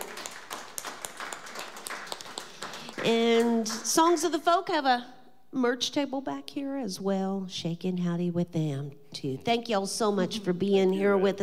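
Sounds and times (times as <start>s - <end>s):
audience applause: 0.0s - 3.4s
speech: 3.0s - 11.4s.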